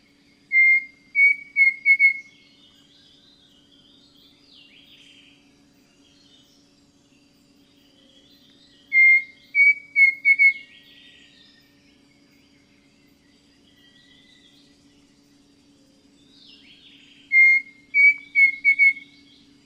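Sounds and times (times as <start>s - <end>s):
Pavonine cuckoo song in eastern lowlands of Ecuador: 0.0s - 2.9s, 8.8s - 11.3s, 16.5s - 19.4s.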